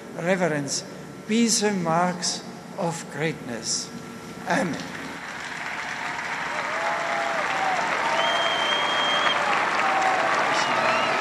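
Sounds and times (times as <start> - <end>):
speech: 0.2 - 5.0
large audience applause: 5.2 - 11.2
faint whistles: 8.1 - 9.5, 10.5 - 11.2.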